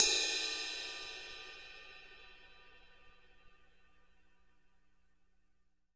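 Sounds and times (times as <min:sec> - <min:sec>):
crash cymbal tip hit: 0:00.0 - 0:03.2.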